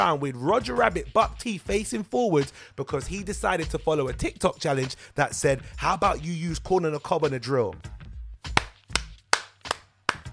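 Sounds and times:
speech: 0.0s - 8.0s
sharp hand claps: 8.5s - 10.3s.

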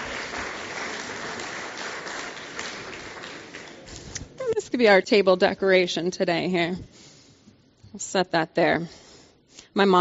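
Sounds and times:
audience applause: 0.0s - 4.1s
speech: 4.8s - 7.0s, 8.0s - 9.0s, 9.8s - 9.9s.

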